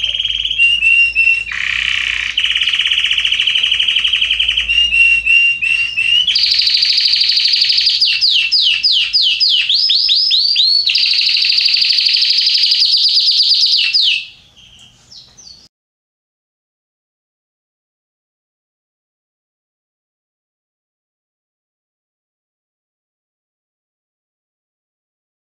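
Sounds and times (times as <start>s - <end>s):
Red Belgian canary singing: 0.0s - 15.7s.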